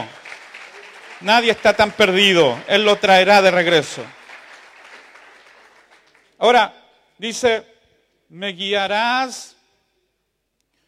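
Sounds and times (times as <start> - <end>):
audience applause: 0.0 - 6.4
speech: 1.2 - 4.2, 6.4 - 7.7, 8.3 - 9.6.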